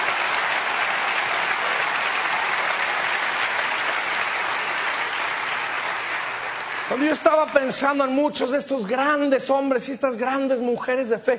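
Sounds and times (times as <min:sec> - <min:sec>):
audience applause: 0:00.0 - 0:08.0
speech: 0:06.9 - 0:11.3.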